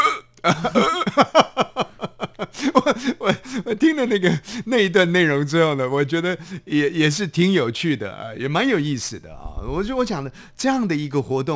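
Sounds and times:
person burping after eating: 0:00.0 - 0:01.4
speech: 0:00.4 - 0:00.9, 0:03.7 - 0:11.5
laughter: 0:00.5 - 0:04.4.

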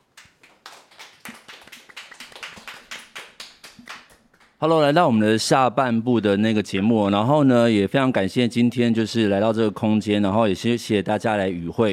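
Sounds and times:
audience applause: 0:00.4 - 0:04.5
speech: 0:04.6 - 0:11.9.

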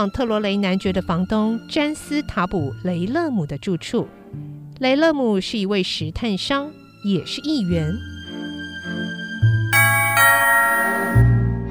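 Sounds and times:
speech: 0:00.0 - 0:08.2
electric doorbell ringing at front door: 0:09.8 - 0:11.5.

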